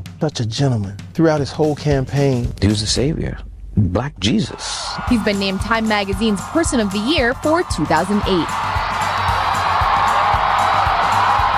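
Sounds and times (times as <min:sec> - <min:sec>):
speech: 0:00.2 - 0:08.7
excited crowd cheering and whooping for President Obama: 0:04.8 - 0:11.5.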